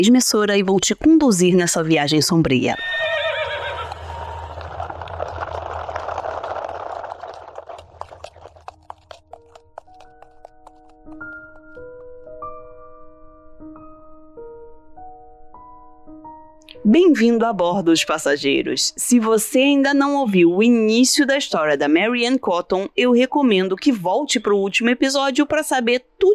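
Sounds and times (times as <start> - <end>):
speech: 0.0 - 3.0, 17.2 - 26.3
horse neighing in a long rough whinny: 2.7 - 4.6
horse hooves clip-clopping for a horse-drawn carriage: 3.4 - 12.2.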